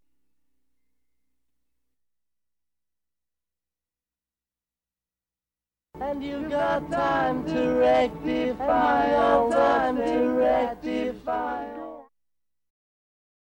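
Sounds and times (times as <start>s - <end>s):
experimental mellotron music: 6.0s - 12.0s.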